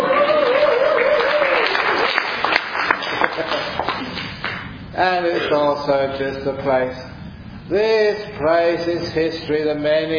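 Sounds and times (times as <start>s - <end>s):
person cheering: 0.0s - 1.8s
audience applause: 0.0s - 4.6s
speech: 5.0s - 7.1s, 7.7s - 10.1s.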